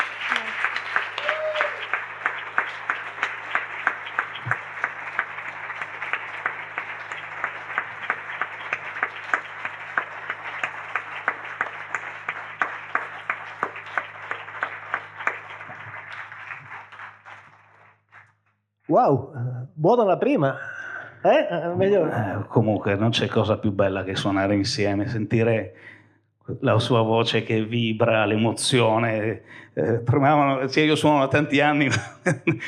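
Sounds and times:
audience applause: 0:00.0 - 0:18.3, 0:30.7 - 0:32.6
speech: 0:18.9 - 0:26.0, 0:26.6 - 0:32.6
laughter: 0:31.0 - 0:32.6.

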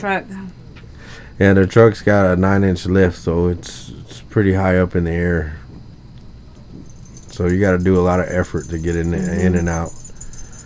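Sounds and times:
speech: 0:00.0 - 0:00.6, 0:01.4 - 0:05.6, 0:07.4 - 0:10.0
dog collar tags jingling: 0:06.6 - 0:10.6
dog scratching: 0:06.8 - 0:10.6.

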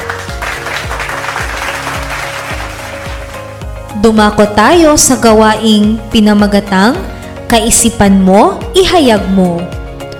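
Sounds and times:
students applauding themselves during a classroom lesson: 0:00.0 - 0:03.7
speech: 0:04.0 - 0:09.8.

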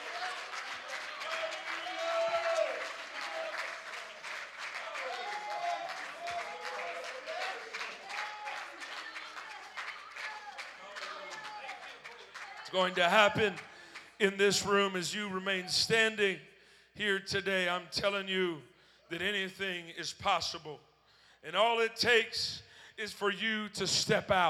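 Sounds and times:
voices and cheers: 0:00.0 - 0:13.7
audience applause: 0:00.0 - 0:14.2
speech: 0:12.7 - 0:24.4.

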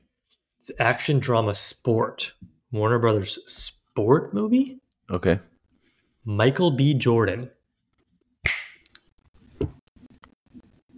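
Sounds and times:
speech: 0:00.6 - 0:05.5, 0:06.2 - 0:07.6
finger snap: 0:08.4 - 0:09.1.

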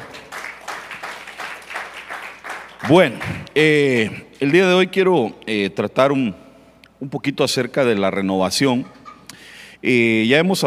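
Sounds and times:
rhythmic crowd applause: 0:00.0 - 0:04.2
speech: 0:02.9 - 0:06.4, 0:07.0 - 0:09.0, 0:09.8 - 0:10.6.

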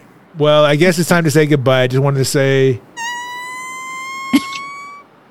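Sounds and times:
speech: 0:00.4 - 0:02.9
fart noises: 0:03.0 - 0:05.0
rising electronic tone: 0:03.0 - 0:05.0.

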